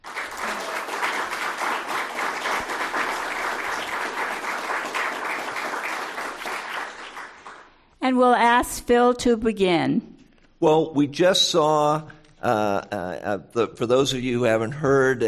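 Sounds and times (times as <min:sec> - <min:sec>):
audience applause welcoming a panel: 0:00.0 - 0:07.8
speech: 0:08.1 - 0:15.2.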